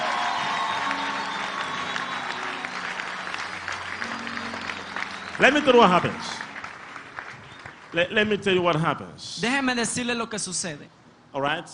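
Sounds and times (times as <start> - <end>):
audience clapping hands steadily: 0.0 - 8.6
speech: 5.4 - 6.4, 7.9 - 11.7.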